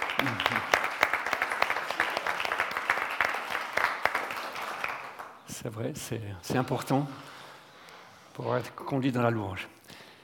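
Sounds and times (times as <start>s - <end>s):
crowd applauding: 0.0s - 5.4s
speech: 5.6s - 7.3s, 8.4s - 9.8s.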